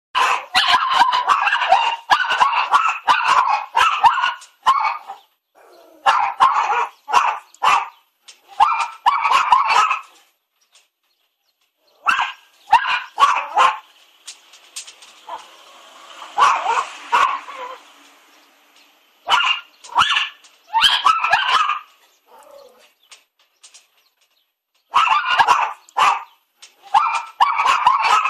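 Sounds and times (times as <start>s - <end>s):
Bichon frise barking: 0.2s - 5.3s, 6.0s - 8.0s, 8.6s - 10.2s, 12.0s - 13.9s, 15.3s - 15.5s, 16.4s - 17.8s, 19.2s - 22.8s, 24.9s - 28.2s.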